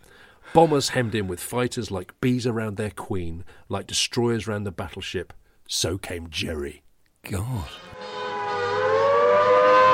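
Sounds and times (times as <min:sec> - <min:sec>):
speech: 0:00.5 - 0:08.0
air raid warning siren: 0:07.8 - 0:09.9.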